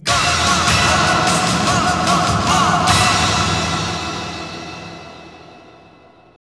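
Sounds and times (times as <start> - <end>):
strings in G sharp: 0.0 - 6.2.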